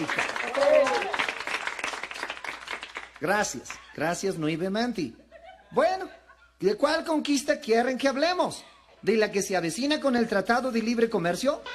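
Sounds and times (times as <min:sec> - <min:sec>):
speech: 0:00.0 - 0:00.7, 0:03.2 - 0:11.7
audience applause: 0:00.0 - 0:03.7
high vocal whoop: 0:00.4 - 0:01.2.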